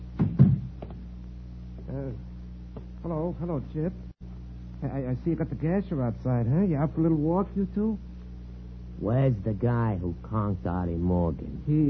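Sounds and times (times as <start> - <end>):
low hum: 0.0 - 11.8
door being shut with a heavy thunk: 0.2 - 1.0
speech: 3.0 - 4.1, 4.8 - 8.1, 9.0 - 11.8.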